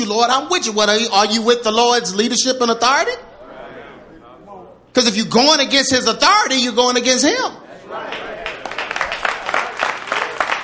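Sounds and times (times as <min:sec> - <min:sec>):
speech: 0:00.0 - 0:03.3, 0:05.0 - 0:08.3
audience clapping hands: 0:08.0 - 0:10.6.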